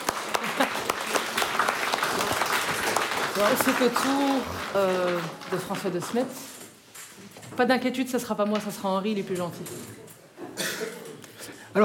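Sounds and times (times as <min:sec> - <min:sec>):
applause: 0:00.0 - 0:06.6
speech: 0:03.4 - 0:06.6, 0:07.6 - 0:10.0.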